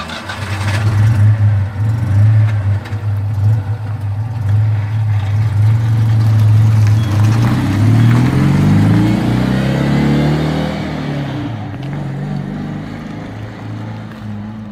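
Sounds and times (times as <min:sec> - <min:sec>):
Citroën 2CV engine starting and revving: 0:00.0 - 0:14.7.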